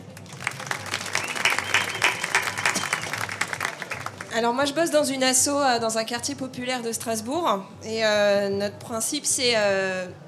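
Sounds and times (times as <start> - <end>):
audience applause: 0.0 - 4.5
speech: 4.4 - 10.2.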